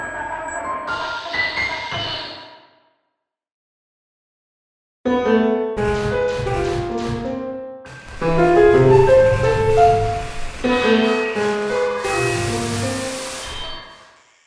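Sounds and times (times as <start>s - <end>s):
piano: 5.1s - 14.1s
electronic ensemble music: 12.0s - 13.9s.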